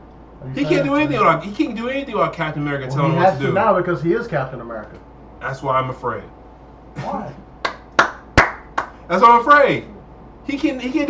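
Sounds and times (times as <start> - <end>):
speech: 0.4 - 6.4, 7.0 - 7.4, 9.1 - 11.0
person clapping hands: 7.6 - 9.0.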